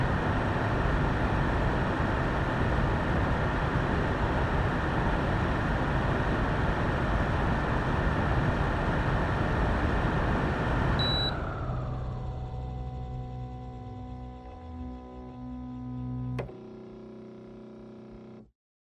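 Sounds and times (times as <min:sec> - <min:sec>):
air conditioner running high: 0:00.0 - 0:18.2.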